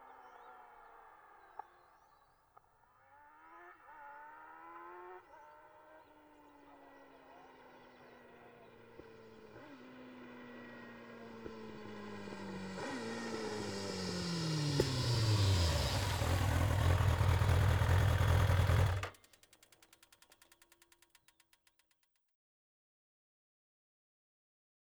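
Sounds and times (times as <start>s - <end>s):
Kawasaki ZX-9R motorcycle engine: 3.1s - 21.1s.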